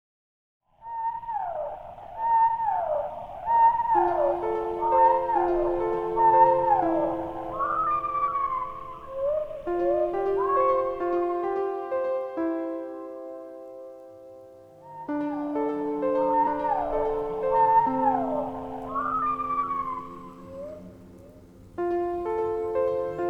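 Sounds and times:
whale vocalization: 0:01.3 - 0:11.8, 0:14.9 - 0:23.2
sustained soft music tones: 0:01.8 - 0:23.2.

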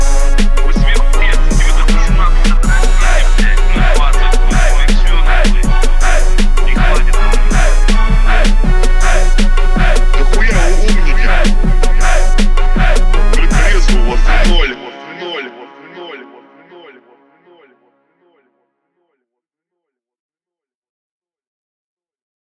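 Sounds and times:
26-29 Hz low bass tone: 0:00.0 - 0:14.6.

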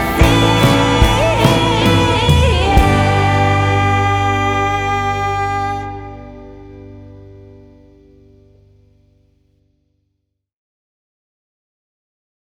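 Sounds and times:
slow ballad: 0:00.0 - 0:09.5.

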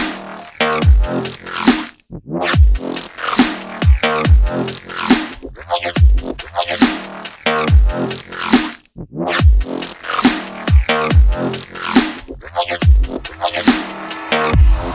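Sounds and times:
busted bass: 0:00.2 - 0:01.6, 0:02.6 - 0:06.8, 0:09.4 - 0:14.9.

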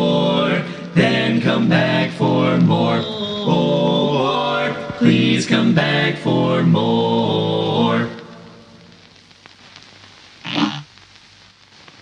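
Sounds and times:
barbershop quartet singing: 0:00.0 - 0:08.3.

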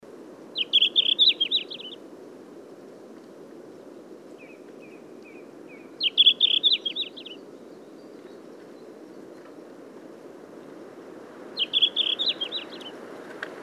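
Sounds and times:
red-flanked bluetail Tarsiger cyanurus warbling song: 0:00.6 - 0:02.0, 0:06.0 - 0:07.4, 0:11.6 - 0:12.9.

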